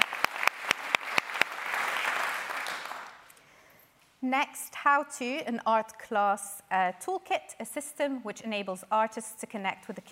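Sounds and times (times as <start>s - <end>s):
audience applause: 0.0s - 3.2s
speech: 4.2s - 10.0s.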